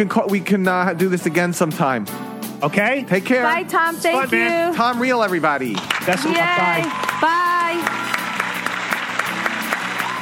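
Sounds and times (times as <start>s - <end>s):
speech: 0.0s - 8.0s
applause: 5.6s - 10.2s.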